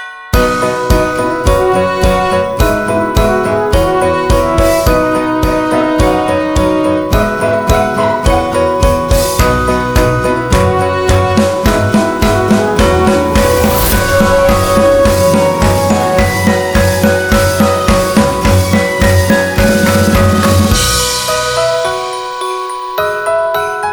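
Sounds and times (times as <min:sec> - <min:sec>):
Yuletide sleigh ride: 0:00.4 - 0:23.8.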